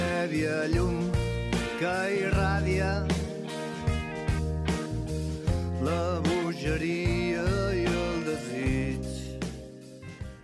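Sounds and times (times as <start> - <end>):
lead voice singing in Catalan: 0.0 - 4.2, 4.8 - 9.8
folk rock band's song: 0.0 - 10.4
speech: 0.3 - 1.2, 1.8 - 3.2.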